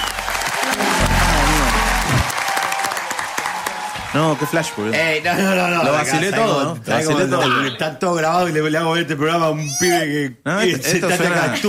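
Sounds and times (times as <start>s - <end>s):
applause: 0.0s - 5.5s
speech: 4.2s - 11.6s.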